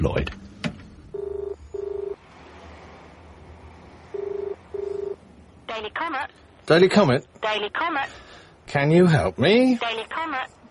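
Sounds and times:
speech: 0:00.0 - 0:00.4, 0:06.1 - 0:10.6
telephone dialing tones: 0:01.1 - 0:02.2, 0:04.1 - 0:05.2.

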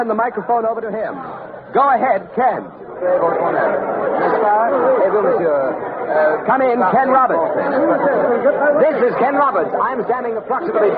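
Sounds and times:
massive crowd murmuring in a square: 0:00.0 - 0:10.9
speech: 0:00.0 - 0:10.9.

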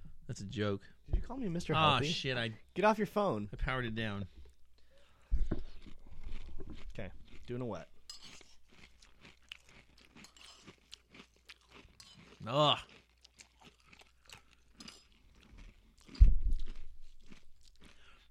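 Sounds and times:
speech: 0:00.3 - 0:04.4, 0:07.0 - 0:07.9, 0:12.4 - 0:12.9
crunchy chewing of an apple: 0:05.6 - 0:18.2.

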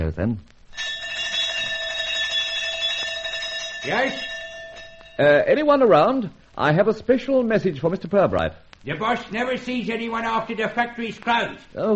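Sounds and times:
speech: 0:00.1 - 0:00.6, 0:03.8 - 0:04.3, 0:05.2 - 0:11.9
electric doorbell ringing: 0:00.8 - 0:05.4.

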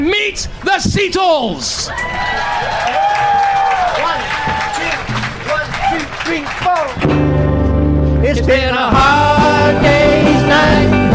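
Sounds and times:
speech: 0:00.3 - 0:03.0, 0:08.3 - 0:11.0
audience applauding and cheering as a tribute band takes the stage: 0:01.8 - 0:07.3.

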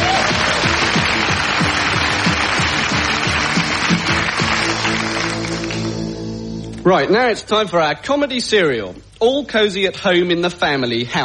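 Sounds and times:
audience applause: 0:00.0 - 0:06.0
speech: 0:06.9 - 0:11.2.

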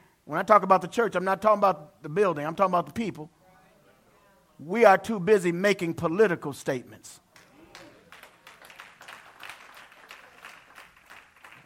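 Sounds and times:
speech: 0:00.3 - 0:03.4, 0:04.6 - 0:07.2
audience clapping: 0:07.3 - 0:11.6.

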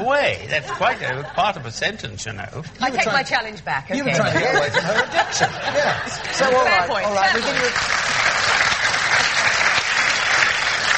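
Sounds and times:
speech: 0:00.1 - 0:08.6
laughter: 0:00.4 - 0:01.6, 0:04.1 - 0:08.6
audience applause: 0:07.2 - 0:10.9.

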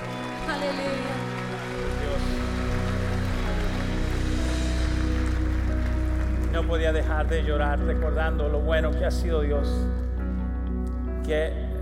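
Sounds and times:
audience applause: 0:00.0 - 0:08.2
speech: 0:06.6 - 0:10.0, 0:11.3 - 0:11.6.

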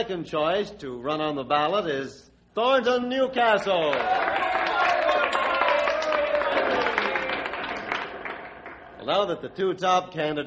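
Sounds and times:
speech: 0:00.0 - 0:04.6, 0:09.0 - 0:10.4
audience applause: 0:03.8 - 0:09.3.

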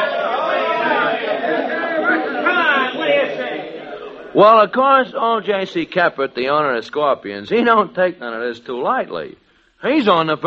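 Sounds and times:
crowd howling at a ballgame: 0:00.0 - 0:04.7
speech: 0:04.4 - 0:10.4.

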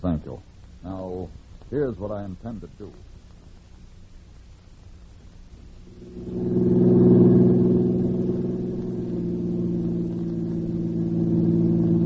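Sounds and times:
speech: 0:00.0 - 0:03.2
car engine droning as the vehicle drives along: 0:05.9 - 0:12.0.

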